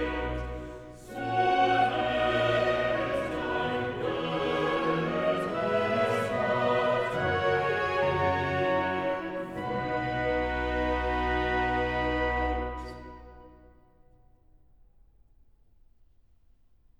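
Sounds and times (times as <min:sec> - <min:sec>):
choir singing cantatas: 0:00.0 - 0:13.5.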